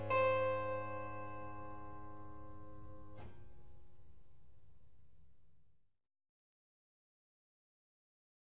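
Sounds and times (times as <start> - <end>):
baroque keyboard sinfonia in A minor: 0.0 - 3.1.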